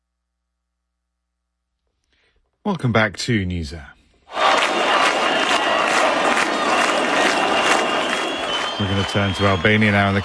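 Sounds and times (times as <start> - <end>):
speech: 2.6 - 4.0, 8.8 - 10.2
nightly protest crowd roaring against a resort development on Albania's Mediterranean coast: 4.3 - 10.2.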